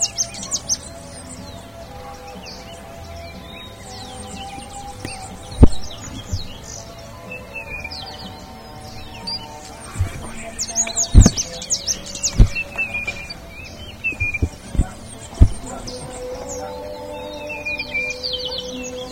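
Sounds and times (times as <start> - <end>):
birds chirping: 0.0 - 19.1
low drone: 0.0 - 19.1
sharp knocks: 14.2 - 16.0.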